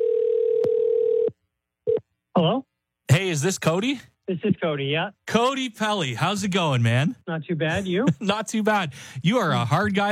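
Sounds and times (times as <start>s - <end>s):
telephone line tone as a call is placed to a contest winner: 0.0s - 1.3s
speech: 2.4s - 10.0s.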